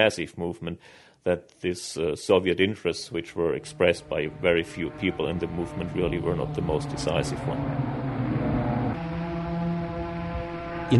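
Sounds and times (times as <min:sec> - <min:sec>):
speech: 0:00.0 - 0:08.2
air raid sirens: 0:03.5 - 0:10.9.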